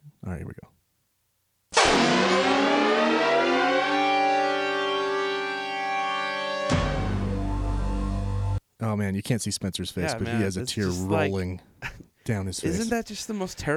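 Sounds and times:
early Amber Alert emergency alert tone: 1.8 - 7.8
lower Amber Alert buzzing tone: 1.8 - 8.6
speech: 8.8 - 13.7.

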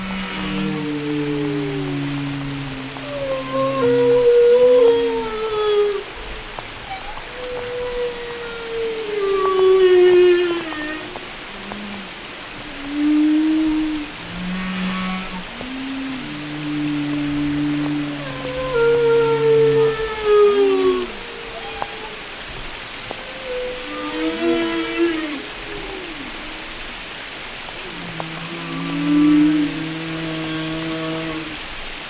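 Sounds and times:
steady hiss: 0.0 - 32.0
whale song: 0.0 - 32.0.

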